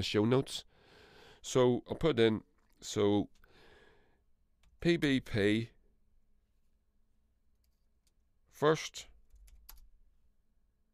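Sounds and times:
speech: 0:00.0 - 0:00.7, 0:01.4 - 0:03.4, 0:04.8 - 0:05.7, 0:08.6 - 0:09.1
typing on a computer keyboard: 0:09.2 - 0:10.0.

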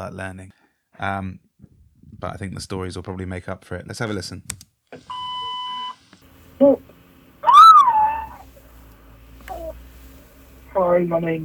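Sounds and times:
speech: 0:00.0 - 0:01.5, 0:02.2 - 0:05.2, 0:06.6 - 0:06.9, 0:10.9 - 0:11.4
child screaming down a phone line: 0:07.4 - 0:08.5.

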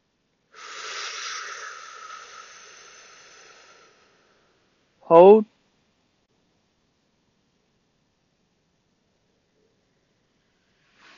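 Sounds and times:
deep breath in during a breathing exercise: 0:00.5 - 0:04.8, 0:10.4 - 0:11.1
speech: 0:05.1 - 0:05.5.

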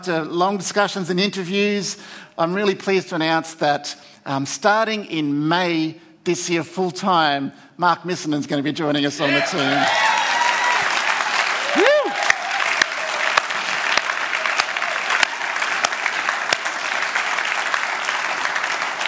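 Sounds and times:
speech: 0:00.0 - 0:10.1
round of applause: 0:09.2 - 0:19.0.

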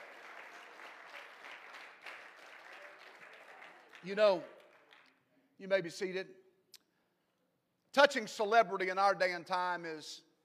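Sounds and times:
audience clapping hands: 0:00.0 - 0:05.2
speech: 0:04.0 - 0:04.6, 0:05.6 - 0:06.4, 0:07.9 - 0:10.3.

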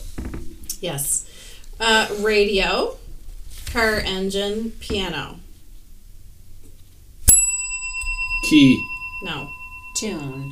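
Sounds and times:
speech: 0:00.8 - 0:03.0, 0:03.7 - 0:05.4, 0:08.5 - 0:10.4
bell ringing: 0:07.3 - 0:10.4.

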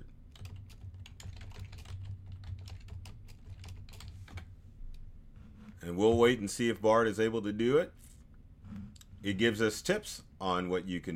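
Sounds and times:
low steady hum: 0:00.0 - 0:11.1
computer keyboard typing: 0:00.3 - 0:04.5
speech: 0:05.8 - 0:08.0, 0:09.2 - 0:11.1.

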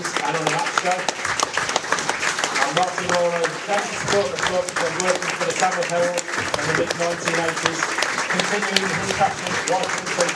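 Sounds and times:
laughter: 0:00.0 - 0:10.3
stadium crowd applause: 0:00.0 - 0:10.3
speech: 0:02.8 - 0:10.3.

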